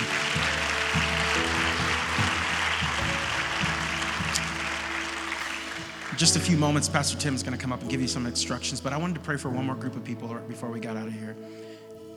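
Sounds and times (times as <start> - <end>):
audience applause: 0.0 - 8.4
speech: 6.2 - 11.7.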